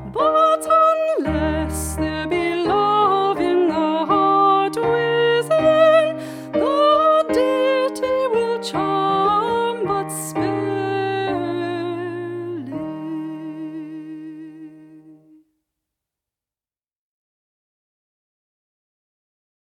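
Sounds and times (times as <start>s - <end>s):
minstrel music: 0.0s - 15.4s.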